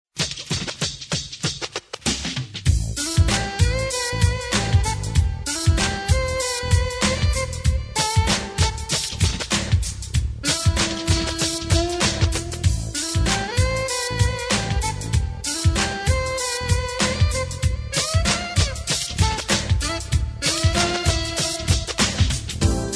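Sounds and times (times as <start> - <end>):
jazz pop music: 0.2 - 22.9.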